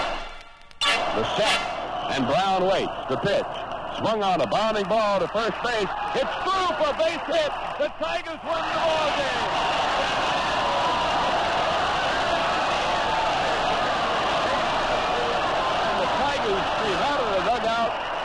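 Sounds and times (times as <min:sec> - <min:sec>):
stadium crowd cheering wildly: 0:00.0 - 0:18.2
speech: 0:01.2 - 0:10.7
shouts and whoops: 0:05.6 - 0:18.2.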